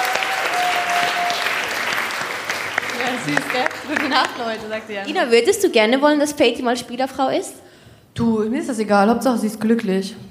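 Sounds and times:
applause: 0.0s - 4.8s
laughter: 2.9s - 4.2s
speech: 3.2s - 7.6s, 8.2s - 10.2s.

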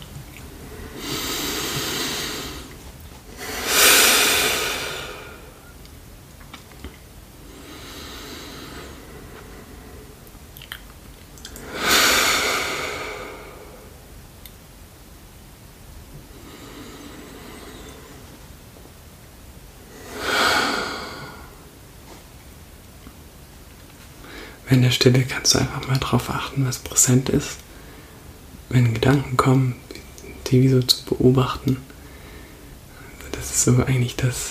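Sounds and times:
deep breaths: 0.5s - 5.8s, 7.4s - 10.3s, 11.5s - 14.0s, 16.2s - 18.5s, 19.9s - 21.8s, 24.2s - 24.6s, 27.7s - 28.4s, 31.9s - 33.3s
speech: 24.7s - 27.6s, 28.7s - 29.8s, 30.5s - 31.9s, 33.6s - 34.4s.

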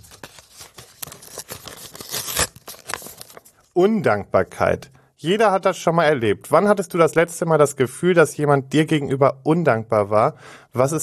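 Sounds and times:
envelope being torn open: 0.0s - 3.7s
speech: 3.8s - 11.0s.

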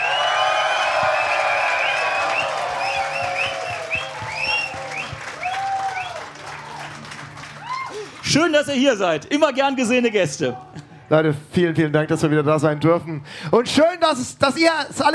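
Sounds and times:
thunderous audience applause: 0.0s - 9.0s
speech: 8.3s - 15.1s.

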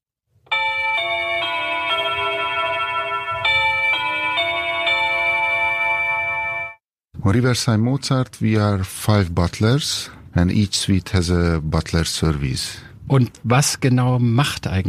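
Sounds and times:
doorbell playing a chime melody: 0.5s - 6.8s
speech: 7.2s - 14.8s.

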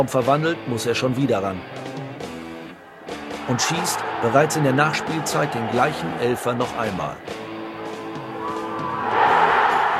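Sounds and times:
speech: 0.0s - 2.0s, 3.5s - 7.4s
stadium crowd cheering after a goal: 2.7s - 9.9s.

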